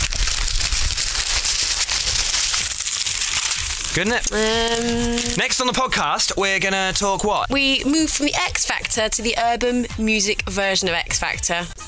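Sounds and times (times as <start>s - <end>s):
newspaper pages rustling: 0.0s - 5.6s
speech: 4.0s - 11.8s.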